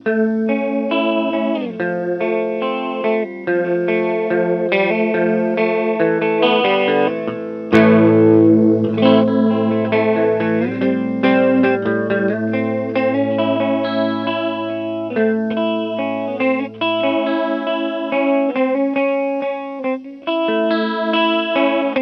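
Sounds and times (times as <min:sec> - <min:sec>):
warped vinyl record playing: 0:00.0 - 0:22.0.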